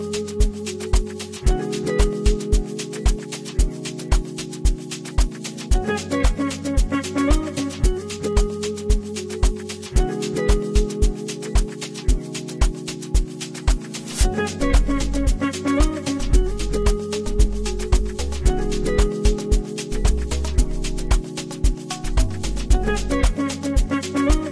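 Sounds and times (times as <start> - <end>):
guitars: 0.0 - 24.4
saxophone: 5.7 - 8.2, 14.2 - 17.6, 22.7 - 24.4.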